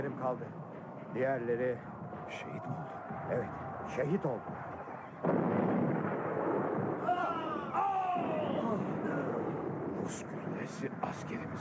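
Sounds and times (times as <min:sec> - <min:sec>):
speech: 0:00.0 - 0:05.4, 0:10.0 - 0:11.6
enemy artillery and gunfire: 0:04.6 - 0:11.6
tonal cry or shout: 0:07.0 - 0:09.6.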